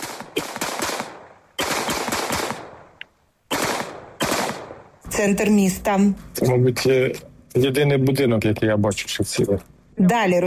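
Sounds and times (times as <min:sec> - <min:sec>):
automatic gunfire shooting down drones: 0:00.0 - 0:04.9
speech: 0:05.2 - 0:10.4.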